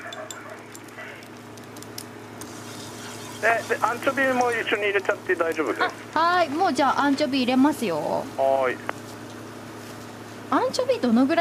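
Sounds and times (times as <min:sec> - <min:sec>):
garlic sizzling in a pan: 0:01.4 - 0:04.4
speech: 0:03.4 - 0:09.0, 0:10.5 - 0:11.4.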